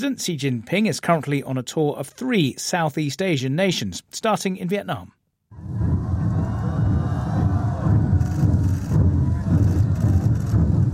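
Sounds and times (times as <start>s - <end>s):
speech: 0.0s - 5.8s
ceremonial drummers in Hanoi: 5.7s - 10.9s.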